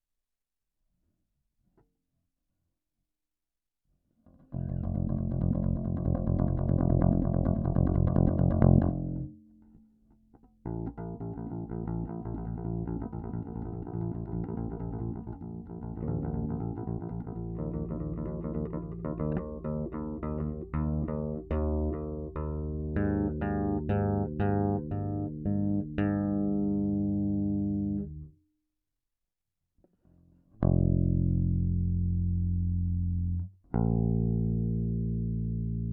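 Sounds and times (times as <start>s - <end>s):
Dean bass guitar through a big amp: 4.5s - 9.3s, 10.6s - 28.3s, 30.6s - 35.9s.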